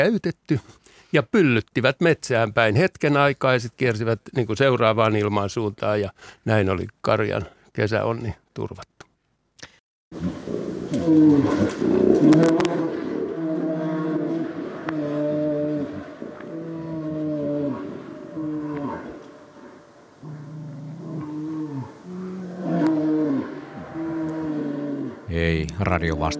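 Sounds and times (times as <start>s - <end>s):
speech: 0.0s - 9.0s, 10.1s - 12.8s, 25.4s - 26.3s
bear growling in Kuhmo: 10.2s - 25.4s, 26.0s - 26.3s.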